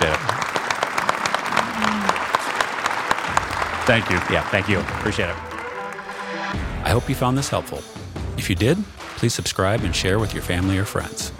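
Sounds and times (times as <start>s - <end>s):
audience applause: 0.0s - 6.5s
speech: 3.9s - 5.5s, 6.9s - 11.3s.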